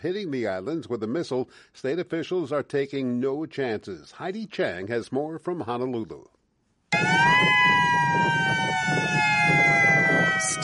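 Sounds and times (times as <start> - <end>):
speech: 0.0 - 6.4, 10.4 - 10.6
Hawaii attack warning siren: 6.9 - 10.6.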